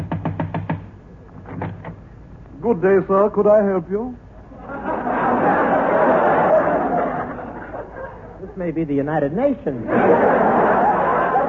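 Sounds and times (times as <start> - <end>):
knocking on a door: 0.0 - 0.9
speech: 2.6 - 4.2, 8.6 - 10.6
laughter: 4.5 - 8.7, 9.8 - 11.4.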